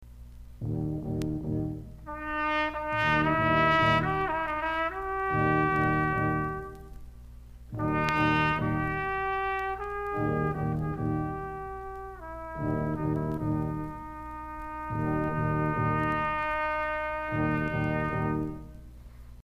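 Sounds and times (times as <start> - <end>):
doina harm scales: 0.6 - 7.0, 7.8 - 18.9.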